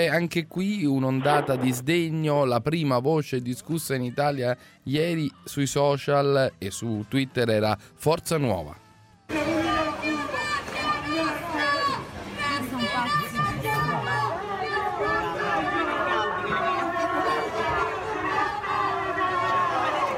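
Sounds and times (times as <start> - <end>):
speech: 0.0 - 9.6
protesters shouting: 9.3 - 20.1.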